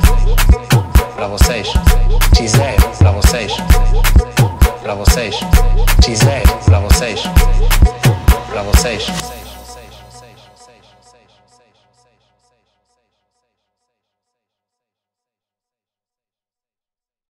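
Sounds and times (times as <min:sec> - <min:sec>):
afro house music: 0:00.0 - 0:11.5.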